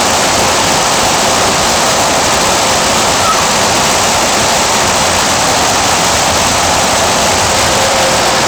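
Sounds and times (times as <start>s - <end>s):
fountain water: 0.0s - 8.4s.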